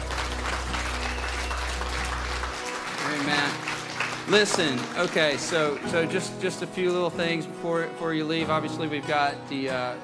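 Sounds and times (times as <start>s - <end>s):
audience applauding: 0.0s - 7.1s
speech: 4.3s - 10.0s.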